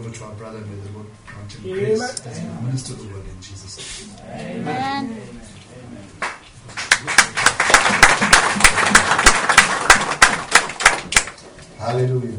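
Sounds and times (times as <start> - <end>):
speech: 0.0 - 7.4, 11.9 - 12.3
audience clapping hands: 6.2 - 11.5.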